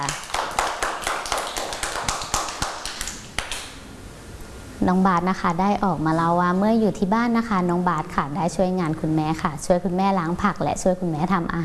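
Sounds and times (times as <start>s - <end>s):
children clapping: 0.0s - 3.8s
speech: 4.8s - 11.6s.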